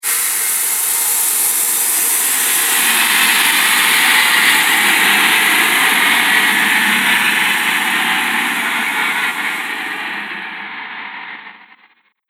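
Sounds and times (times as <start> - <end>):
horror dissonant air drone: 0.0 - 11.8.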